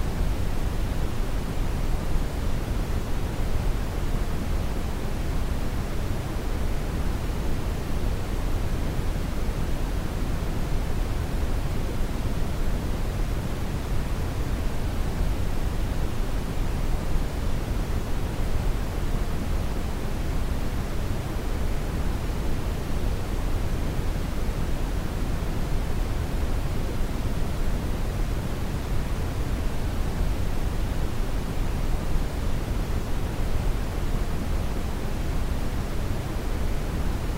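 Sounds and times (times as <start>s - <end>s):
white noise: 0.0s - 37.3s.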